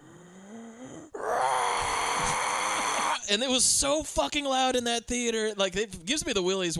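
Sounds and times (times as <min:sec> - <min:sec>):
man imitating an anguished movie scream: 0:01.2 - 0:03.3
speech: 0:03.3 - 0:06.7.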